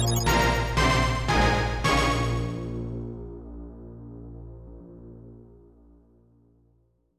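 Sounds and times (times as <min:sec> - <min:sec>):
fanfare: 0:00.2 - 0:02.9.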